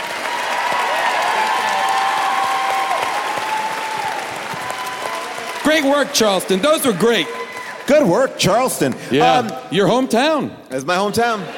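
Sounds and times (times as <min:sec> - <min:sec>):
audience applause: 0:00.0 - 0:09.5
speech: 0:05.7 - 0:11.5.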